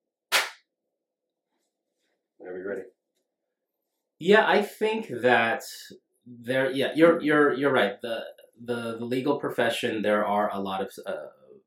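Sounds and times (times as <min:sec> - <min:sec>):
single hand clap for audio syncing: 0:00.3 - 0:00.6
speech: 0:02.4 - 0:03.0, 0:04.2 - 0:11.4.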